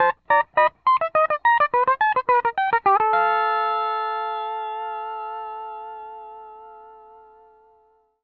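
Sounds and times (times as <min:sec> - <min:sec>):
music loop: 0:00.0 - 0:06.2.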